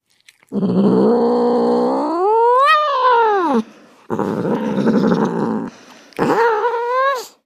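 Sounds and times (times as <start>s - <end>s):
domestic cat growling: 0.3s - 7.4s.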